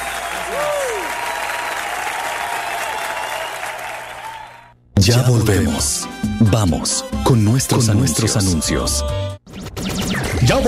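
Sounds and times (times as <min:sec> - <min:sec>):
applause from a sizable audience: 0:00.0 - 0:04.7
speech: 0:05.1 - 0:09.3, 0:10.5 - 0:10.6.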